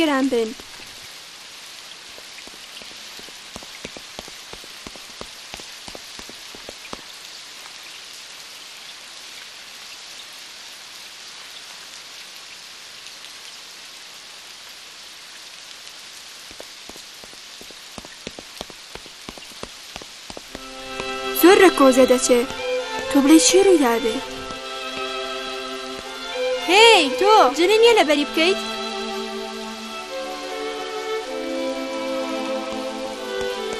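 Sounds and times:
speech: 0:00.0 - 0:00.7, 0:21.8 - 0:24.3, 0:26.7 - 0:28.7
sharper drip ticks: 0:00.0 - 0:07.8, 0:16.2 - 0:28.0, 0:31.2 - 0:33.7
steady rain striking a surface: 0:00.0 - 0:33.7.

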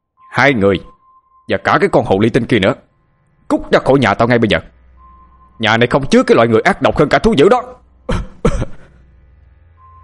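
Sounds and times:
speech: 0:00.4 - 0:00.9, 0:01.5 - 0:02.9, 0:03.5 - 0:04.7, 0:05.6 - 0:08.6
father coughing in anger: 0:08.1 - 0:09.0.

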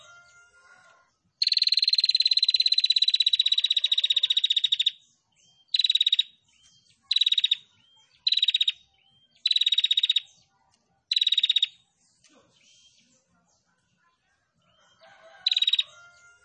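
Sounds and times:
female prinia singing rattling trills: 0:01.4 - 0:05.0, 0:05.6 - 0:10.3, 0:11.1 - 0:11.8, 0:15.2 - 0:16.2.

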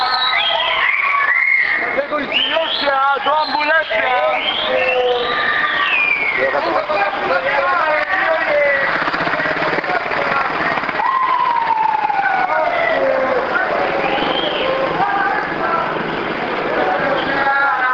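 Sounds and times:
ambulance siren wailing in a hospital neighborhood: 0:00.0 - 0:07.7, 0:10.8 - 0:15.8
rumble of engine and street noise: 0:00.0 - 0:17.9.

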